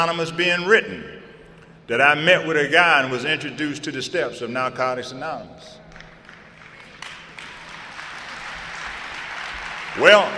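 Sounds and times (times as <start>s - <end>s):
speech: 0.0s - 1.2s, 1.9s - 5.8s, 10.0s - 10.3s
audience clapping: 5.9s - 10.3s.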